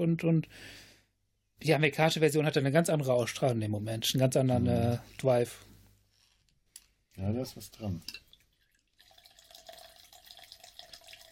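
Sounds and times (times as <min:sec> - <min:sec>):
speech: 0:00.0 - 0:00.9, 0:01.6 - 0:05.7, 0:07.2 - 0:08.2
drinks pouring into a glass: 0:08.1 - 0:11.3.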